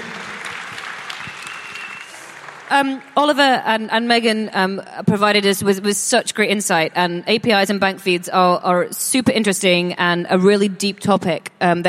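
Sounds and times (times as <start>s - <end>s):
audience applause: 0.0s - 3.2s
speech: 2.7s - 11.8s.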